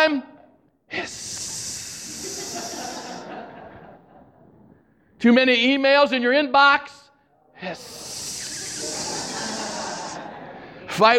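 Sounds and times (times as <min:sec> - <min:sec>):
speech: 0:00.0 - 0:00.3, 0:00.9 - 0:01.3, 0:05.2 - 0:07.0, 0:07.6 - 0:08.1, 0:11.0 - 0:11.1
person hissing imitating air escaping a tire: 0:00.9 - 0:03.5, 0:07.6 - 0:10.4
laughter: 0:01.3 - 0:04.8, 0:07.8 - 0:11.1.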